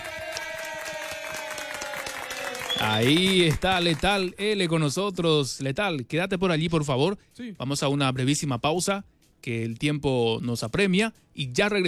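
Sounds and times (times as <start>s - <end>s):
live show audience applauding a guest: 0.0s - 4.4s
speech: 2.8s - 11.8s.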